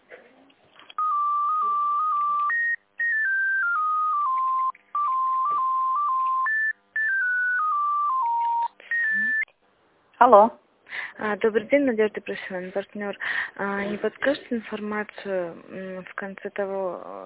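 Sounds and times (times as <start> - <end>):
electronic telephone tones while a call is transferred: 0.9 - 9.5
speech: 10.2 - 10.6, 11.2 - 17.2.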